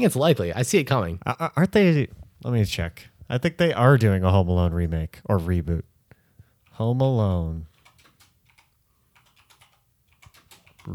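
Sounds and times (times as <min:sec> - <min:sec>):
speech: 0:00.0 - 0:05.9, 0:06.8 - 0:07.7
rapid typing on a computer keyboard: 0:07.7 - 0:10.9.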